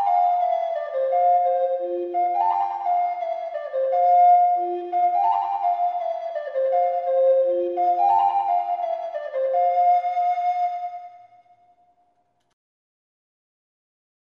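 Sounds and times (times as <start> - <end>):
fast fantasy music: 0.0 - 11.3.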